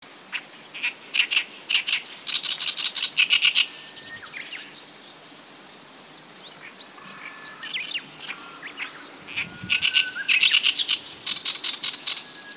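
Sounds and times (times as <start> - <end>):
Oriental reed warbler chattering song: 0.0 - 12.5
steady high insect hum: 0.0 - 12.5.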